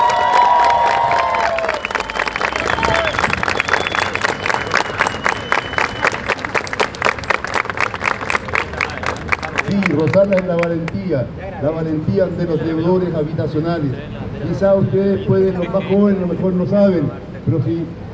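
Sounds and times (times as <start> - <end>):
audience cheering: 0.0 - 6.6
audience applause: 0.0 - 10.7
speech: 10.2 - 18.0.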